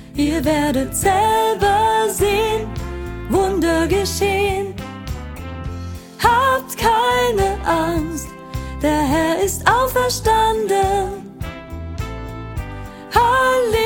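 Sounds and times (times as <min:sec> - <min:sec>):
soprano solo singing: 0:00.1 - 0:04.8, 0:06.2 - 0:11.6, 0:13.0 - 0:13.8.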